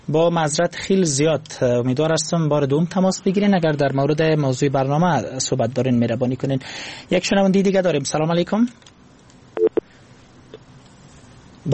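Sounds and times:
speech: 0.1 - 9.0
phone line clicks cutting off during a radio call-in show: 9.6 - 9.8.

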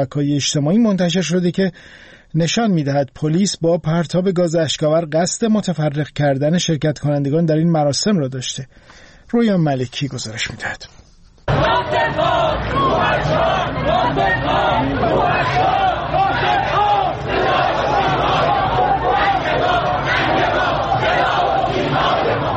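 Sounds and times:
speech: 0.0 - 15.9
crowd shouting at a funeral procession in Tehran: 11.5 - 22.5.

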